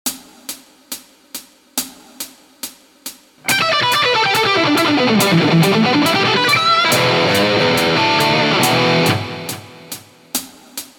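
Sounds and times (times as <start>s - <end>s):
guitar licks: 3.4s - 10.0s.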